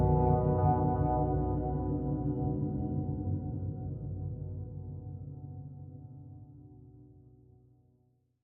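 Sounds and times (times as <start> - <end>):
synth pads: 0.0 - 5.6.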